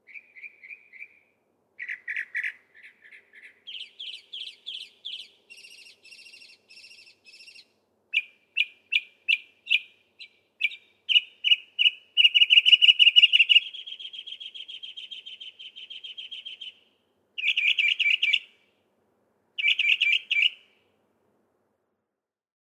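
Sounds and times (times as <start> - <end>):
Northern Mockingbird: 1.8 - 16.8, 17.4 - 18.5, 19.6 - 20.7.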